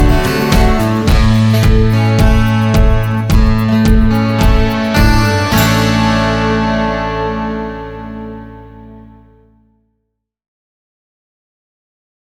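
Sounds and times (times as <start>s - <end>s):
full music mix: 0.0s - 9.8s.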